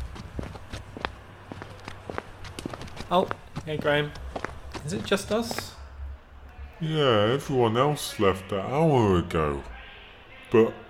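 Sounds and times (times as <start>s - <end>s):
footsteps going downstairs: 0.0s - 5.8s
speech: 3.1s - 4.2s, 4.8s - 5.7s, 6.8s - 9.7s, 10.5s - 10.8s.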